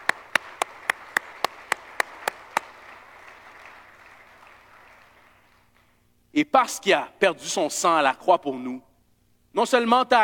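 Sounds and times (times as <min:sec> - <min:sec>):
audience applauding: 0:00.0 - 0:05.9
speech: 0:06.4 - 0:08.9, 0:09.5 - 0:10.2.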